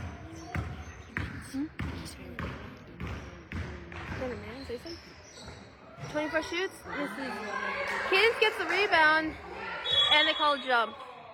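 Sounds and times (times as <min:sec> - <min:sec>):
basketball dribbled down the court during a game: 0:00.0 - 0:06.4
speech: 0:06.1 - 0:09.5, 0:10.1 - 0:11.0.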